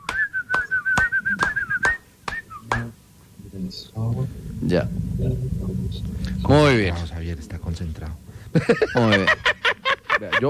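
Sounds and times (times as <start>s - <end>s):
person whistling a tune: 0.0s - 2.8s
hand claps: 0.0s - 2.9s
speech: 3.7s - 9.5s, 10.2s - 10.4s
laughter: 8.5s - 10.4s.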